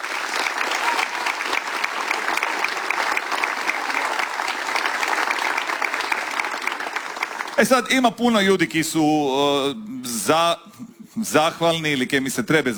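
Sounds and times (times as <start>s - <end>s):
festival crowd applause for a performer of Chakavian-dialect songs: 0.0s - 7.9s
speech: 7.6s - 12.7s.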